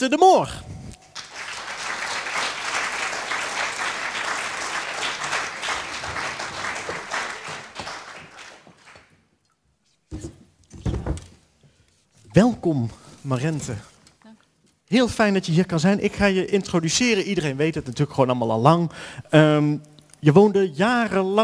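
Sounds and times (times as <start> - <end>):
speech: 0.0 - 0.6, 12.4 - 13.9, 14.9 - 21.4
loud audience applause: 1.1 - 9.1.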